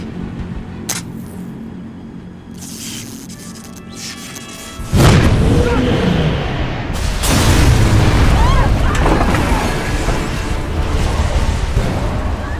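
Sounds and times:
airship exploding into flames: 4.9s - 12.5s.

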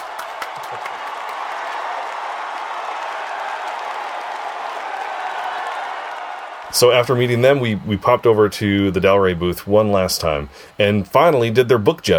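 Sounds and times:
audience applause: 0.0s - 7.2s
speech: 6.7s - 12.1s.

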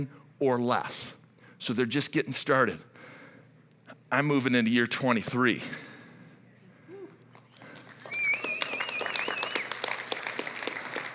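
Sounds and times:
speech: 0.0s - 2.9s, 4.1s - 5.9s
crowd applause: 7.5s - 11.1s
whistle: 8.0s - 9.8s.

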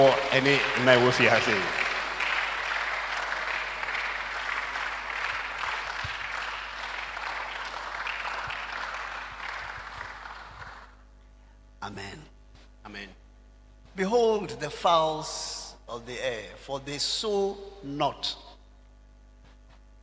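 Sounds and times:
speech: 0.0s - 1.8s, 14.9s - 18.4s
audience applause: 0.0s - 11.0s.

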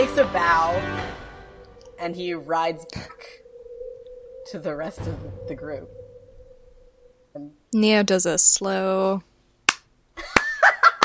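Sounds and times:
speech: 0.1s - 1.2s, 2.0s - 3.4s, 4.5s - 6.0s, 7.4s - 9.3s
hand clap: 9.7s - 11.0s.

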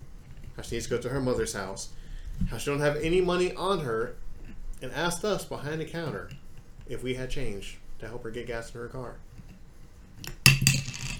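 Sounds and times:
speech: 0.6s - 4.2s, 4.8s - 9.3s
cap being dropped: 10.3s - 11.1s.

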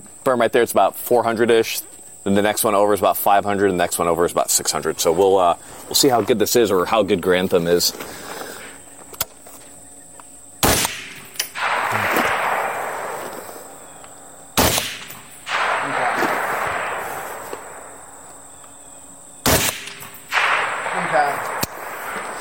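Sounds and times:
steady hissing noise: 0.0s - 22.4s
speech: 0.2s - 8.4s
rifle rounds striking targets at 300 to 600 yards on a shooting range: 10.6s - 22.4s.

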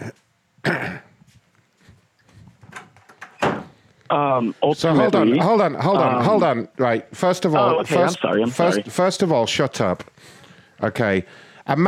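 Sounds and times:
speech: 0.6s - 1.1s, 4.1s - 11.8s
office door being closed with dull thumps: 2.7s - 3.7s.

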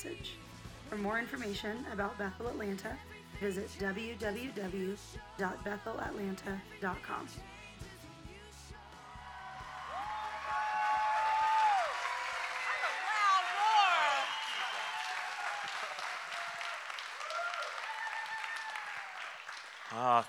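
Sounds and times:
speech: 0.0s - 7.5s, 20.0s - 20.2s
audience whooping and yelling: 8.8s - 20.0s.

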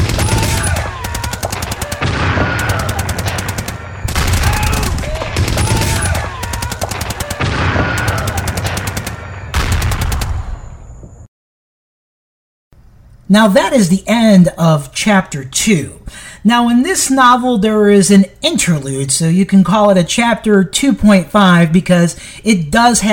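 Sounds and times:
alien weapons fire in a science-fiction audiobook action scene: 0.0s - 10.9s
speech: 13.3s - 23.1s.

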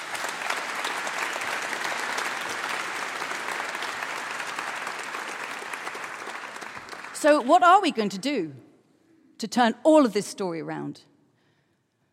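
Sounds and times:
audience applause: 0.0s - 7.6s
speech: 7.2s - 8.7s, 9.4s - 11.1s.

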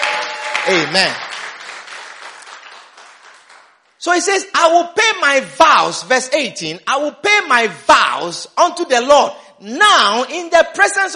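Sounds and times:
audience applauding: 0.0s - 4.0s
speech: 0.6s - 1.2s, 4.0s - 11.1s.

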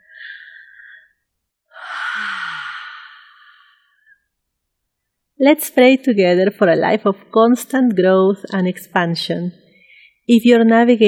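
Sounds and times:
deep relaxing breath with long sighing exhale: 0.0s - 4.2s, 9.7s - 10.2s
speech: 5.4s - 9.6s, 10.3s - 11.0s.

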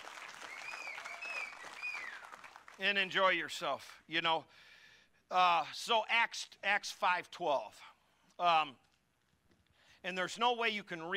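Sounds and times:
audience applause: 0.0s - 2.8s
speech: 2.8s - 4.7s, 5.3s - 8.8s, 10.0s - 11.1s.

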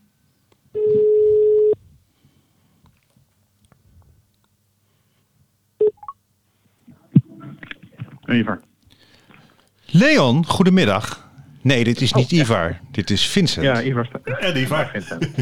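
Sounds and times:
telephone ringing tone: 0.8s - 1.8s
speech: 8.3s - 8.7s, 9.9s - 15.4s
laughter: 14.2s - 15.4s.

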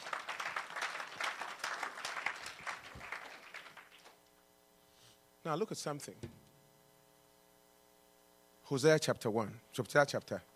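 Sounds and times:
audience clapping: 0.0s - 4.2s
speech: 5.4s - 6.4s, 8.7s - 10.5s.

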